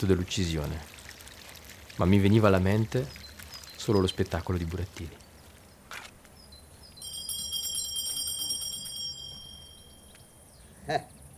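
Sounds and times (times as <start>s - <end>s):
speech: 0.0s - 1.0s, 2.0s - 3.2s, 3.8s - 5.2s, 10.9s - 11.1s
doorbell ringing: 7.0s - 10.2s.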